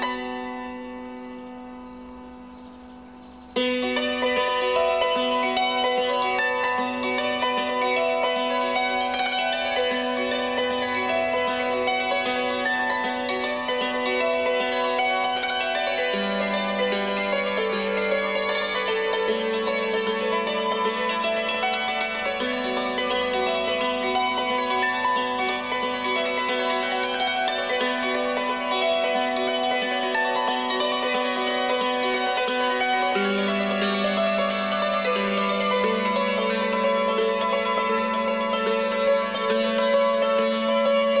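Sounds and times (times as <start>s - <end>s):
cimbalom playing: 0.0s - 41.1s.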